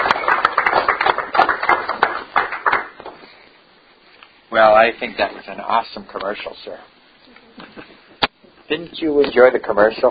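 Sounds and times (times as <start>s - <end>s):
audience clapping: 0.0s - 3.3s
speech: 4.6s - 6.9s, 8.7s - 10.0s.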